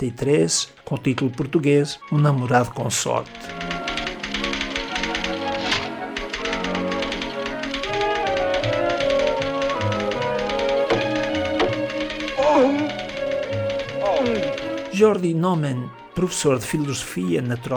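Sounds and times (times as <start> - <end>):
speech: 0.0 - 3.8, 15.0 - 17.7
orchestral piece: 0.0 - 17.7
typewriter keys clacking: 3.4 - 15.0.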